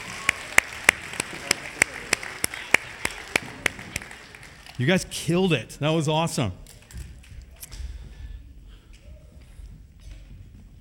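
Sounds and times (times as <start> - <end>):
audience applause: 0.0 - 5.2
speech: 4.8 - 6.6.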